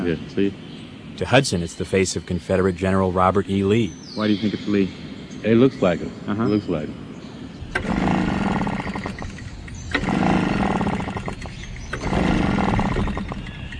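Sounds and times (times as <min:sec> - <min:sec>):
speech: 0:00.0 - 0:07.0
gasoline-powered leaf blower: 0:07.7 - 0:13.5.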